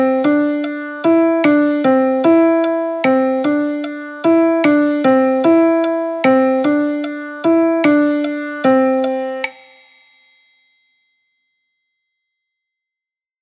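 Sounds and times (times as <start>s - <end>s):
piano music: 0.0s - 9.6s.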